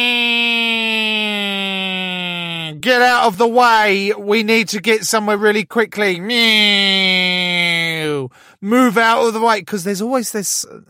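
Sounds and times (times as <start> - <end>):
voice imitating an ambulance siren: 0.0 - 2.8
speech: 2.8 - 10.8.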